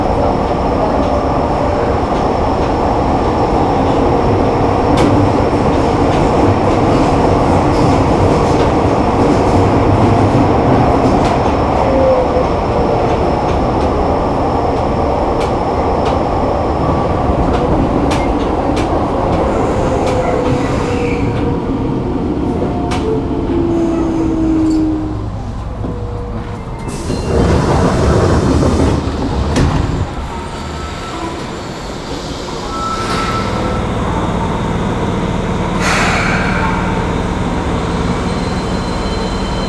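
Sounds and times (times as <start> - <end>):
subway train: 0.0 - 39.6.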